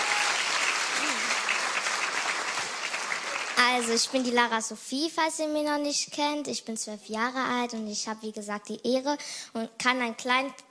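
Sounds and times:
audience applause: 0.0 - 4.4
speech: 3.8 - 10.7.

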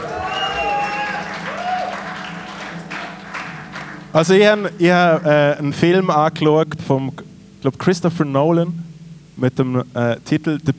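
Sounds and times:
whistle-like tones: 0.0 - 2.6
cheers: 0.0 - 4.0
crowd applauding: 0.0 - 5.6
speech: 4.1 - 8.8, 9.4 - 10.7.

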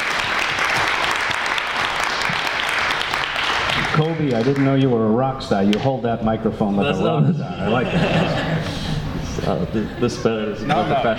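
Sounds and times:
audience applause: 0.0 - 4.9
speech: 4.0 - 8.9, 9.5 - 11.1
laughter: 6.6 - 11.1.

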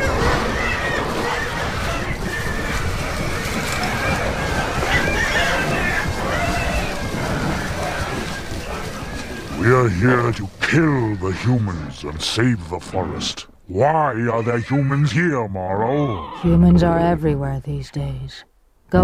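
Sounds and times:
boars crunching through the forest: 0.2 - 12.8
speech: 10.0 - 19.0.

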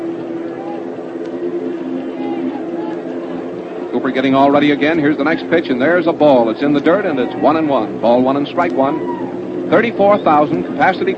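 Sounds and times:
airplane drone overhead: 0.0 - 11.1
speech: 4.0 - 11.1.

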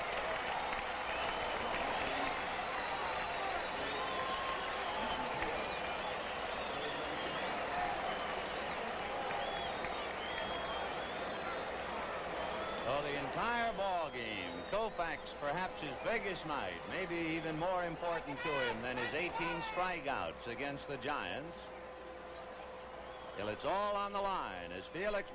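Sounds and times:
clapping: 0.0 - 12.9
baseball stadium crowd cheering: 0.0 - 25.3
whistles: 1.1 - 1.8, 2.9 - 13.0, 22.3 - 23.9
speech: 13.4 - 21.8, 23.4 - 25.3.

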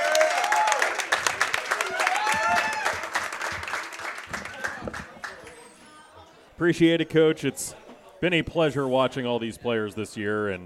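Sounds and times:
audience at a live football roundup in a bar applauding the team's coach: 0.0 - 5.5
speech: 6.6 - 10.6.

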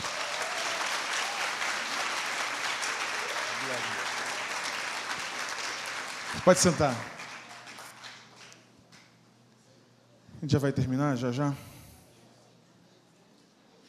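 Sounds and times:
audience applauding: 0.0 - 8.7
speech: 6.3 - 7.1, 10.4 - 11.7.

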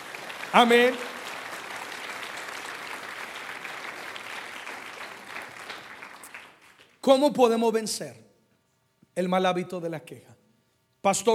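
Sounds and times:
audience applauding loudly: 0.0 - 6.9
speech: 0.5 - 1.1, 7.1 - 8.2, 9.2 - 10.4, 11.0 - 11.3.

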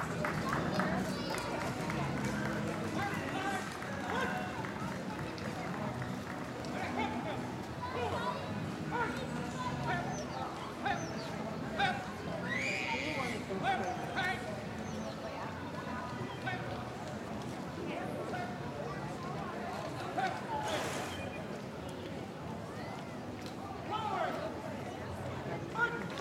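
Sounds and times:
Memorial Day parade crowd chattering on College Ave in Downtown Appleton: 0.0 - 26.2.

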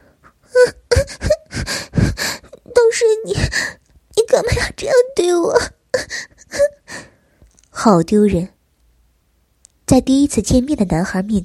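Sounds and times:
girl whimpering and crying: 0.2 - 7.1
speech: 7.9 - 8.6, 9.9 - 11.4.

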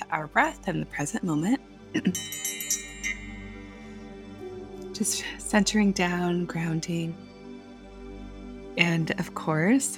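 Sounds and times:
speech: 0.1 - 2.6, 5.0 - 7.3, 8.8 - 9.9
single bell struck and ringing: 2.1 - 4.0.

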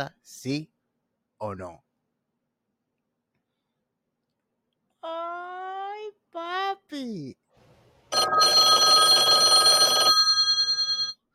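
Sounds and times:
speech: 0.0 - 0.7, 1.4 - 1.9, 6.4 - 7.4, 8.2 - 9.1
telephone ringing with a bright buzzy metallic bell: 8.1 - 11.2.

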